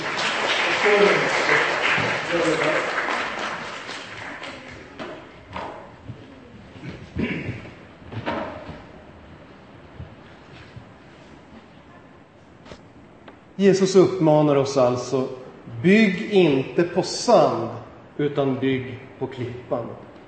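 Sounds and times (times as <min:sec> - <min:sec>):
small group applauding in a reverberant room: 0:00.0 - 0:06.1
speech: 0:00.8 - 0:01.5, 0:02.3 - 0:03.0, 0:13.6 - 0:20.1.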